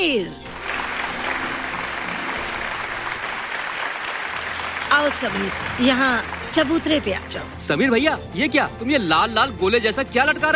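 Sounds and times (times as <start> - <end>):
speech: 0.0 - 0.5, 5.0 - 10.5
audience applause welcoming a guest: 0.5 - 7.5.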